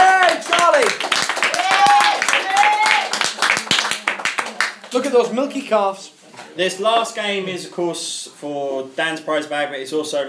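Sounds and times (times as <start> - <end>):
audience applause for a winner: 0.0 - 5.1
speech: 5.0 - 10.2.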